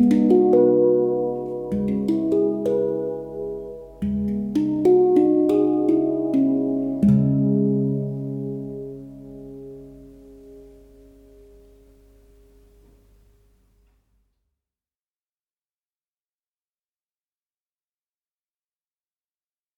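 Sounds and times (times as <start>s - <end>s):
handpan playing: 0.0s - 12.1s.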